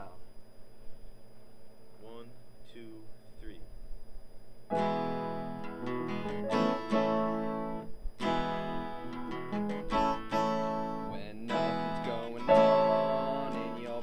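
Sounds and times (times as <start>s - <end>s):
pub house band playing: 4.7s - 14.0s.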